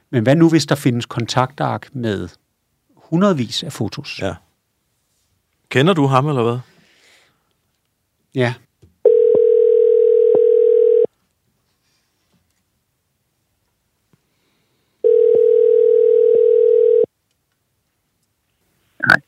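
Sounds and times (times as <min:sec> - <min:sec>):
speech: 0:00.1 - 0:02.4, 0:03.1 - 0:04.4, 0:05.7 - 0:06.7, 0:08.4 - 0:08.6
telephone ringback tone: 0:09.1 - 0:11.1, 0:15.0 - 0:17.1
telephone line click as the line picks up: 0:15.1 - 0:17.1.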